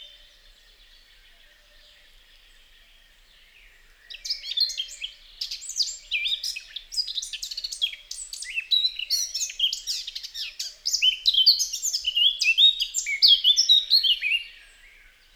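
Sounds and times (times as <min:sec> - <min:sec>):
Eurasian blackcap song: 0:04.1 - 0:14.6.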